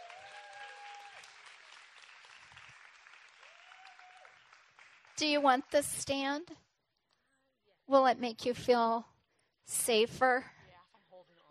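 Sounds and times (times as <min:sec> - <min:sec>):
applause: 0:00.0 - 0:06.1
speech: 0:05.2 - 0:06.6, 0:07.9 - 0:10.6.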